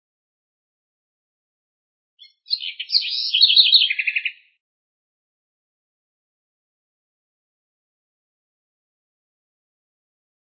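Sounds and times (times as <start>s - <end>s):
house wren song: 2.2s - 4.6s.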